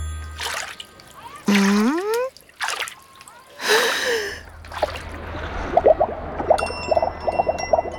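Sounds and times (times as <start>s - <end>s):
bubbly water trickling: 0.1s - 3.6s, 4.4s - 7.9s
water splashing as a child dunks his head under the surface: 0.2s - 7.9s
short vocal sounds of a child: 1.2s - 2.4s.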